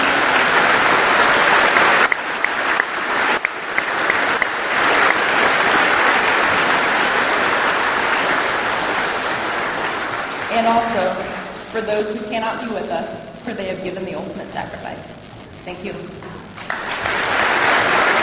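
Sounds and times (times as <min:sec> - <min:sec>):
audience applause honoring veterans at a ceremony: 0:00.0 - 0:11.7, 0:16.2 - 0:18.2
speech: 0:11.8 - 0:17.4.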